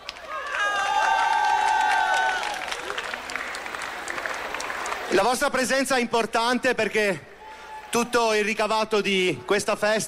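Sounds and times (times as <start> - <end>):
audience applause: 0.0 - 5.5
cheers and whistles: 0.2 - 3.1
speech: 5.1 - 7.3, 7.9 - 10.0.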